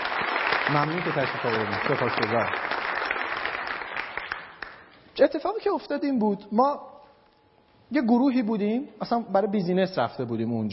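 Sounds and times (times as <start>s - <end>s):
room full of people clapping: 0.0s - 4.8s
speech: 0.7s - 2.8s, 5.2s - 6.9s, 7.9s - 10.7s.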